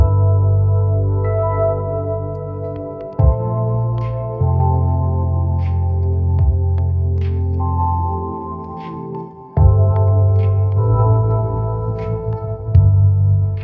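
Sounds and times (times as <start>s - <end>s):
lo-fi hip hop music: 0.0s - 13.6s.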